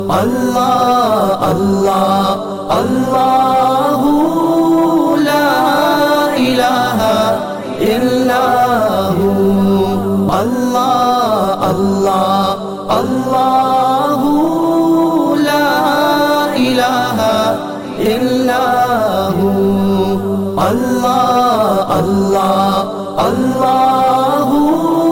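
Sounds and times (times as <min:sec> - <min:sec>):
Islamic chant ringtone: 0:00.0 - 0:25.0.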